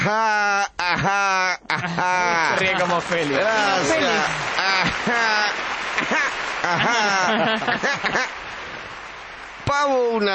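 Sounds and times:
laughter: 0.0 - 9.0
speech: 0.1 - 8.4, 9.7 - 10.3
voices calling and cheering: 2.0 - 10.3
audience applause: 2.2 - 10.3.

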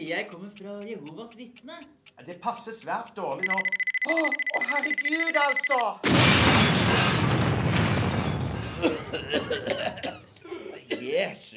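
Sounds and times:
speech: 0.0 - 7.4, 8.8 - 10.2, 11.1 - 11.5
explosion blowing up a chair: 6.0 - 8.8.

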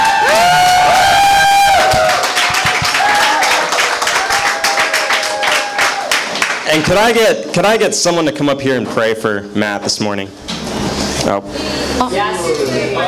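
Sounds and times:
high-pitched whoops and cheers: 0.0 - 6.3
audience applause: 0.0 - 6.9
speech: 6.8 - 13.0.

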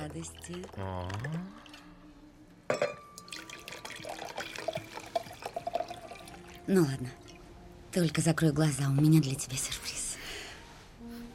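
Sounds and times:
wine pouring into glasses: 0.0 - 1.9, 3.1 - 7.4
speech: 0.1 - 1.7, 6.7 - 7.2, 7.9 - 9.8
glass clink: 2.7 - 6.2.

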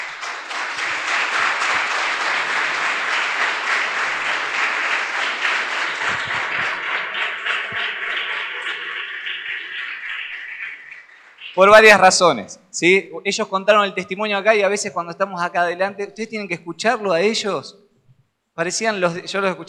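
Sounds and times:
church congregation applause: 0.0 - 12.2
speech: 11.6 - 17.8, 18.6 - 19.6.

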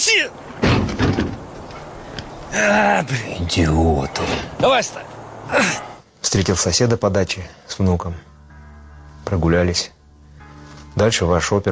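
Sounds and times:
speech: 0.0 - 0.6, 2.5 - 8.3, 9.3 - 10.0, 11.0 - 11.6
door being shut and locked: 0.6 - 1.5.

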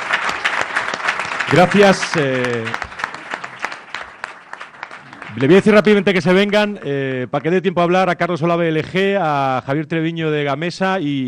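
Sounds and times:
audience applause for a panel at a human resources forum: 0.0 - 7.5
speech: 1.5 - 2.9, 5.4 - 11.2.

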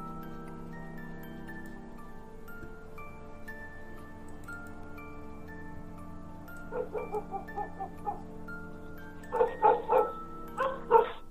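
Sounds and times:
dogs barking loudly in a village: 6.7 - 8.2, 9.3 - 11.2.

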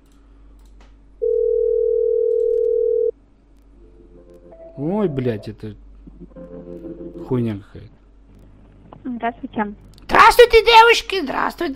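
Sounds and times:
telephone dial tone while dialing a debt collection line: 1.2 - 3.1
speech: 4.8 - 5.8, 7.3 - 7.9, 9.2 - 11.7.

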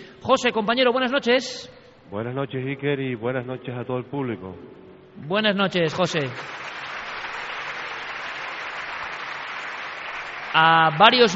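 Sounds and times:
speech: 0.3 - 6.7, 10.6 - 11.3
crowd applause welcoming a live connection: 6.2 - 11.3.

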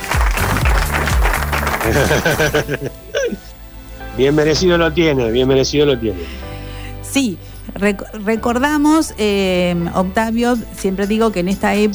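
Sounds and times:
applause: 0.0 - 2.8
laughter: 0.0 - 3.6
speech: 1.8 - 3.5, 4.2 - 6.5, 7.1 - 11.9.

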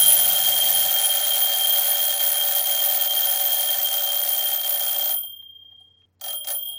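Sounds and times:
alarm clock bell ringing: 0.0 - 6.7.

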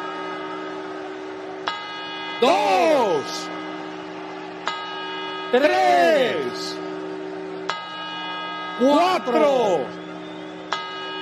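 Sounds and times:
midnight New Year's clock bell strike: 0.0 - 11.2
speech: 2.4 - 3.6, 5.5 - 6.8, 8.8 - 10.0.

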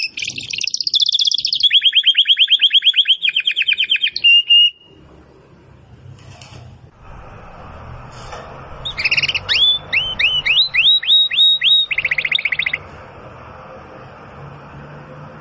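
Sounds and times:
domestic canary song: 0.0 - 5.0, 8.8 - 12.8.

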